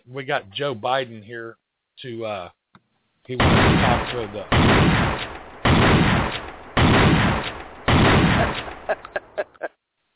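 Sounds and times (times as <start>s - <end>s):
speech: 0.1s - 2.6s, 3.2s - 5.1s, 8.4s - 9.5s
sharp pops: 3.3s - 9.2s
shotgun blasts: 3.4s - 8.9s
laughter: 8.3s - 9.7s.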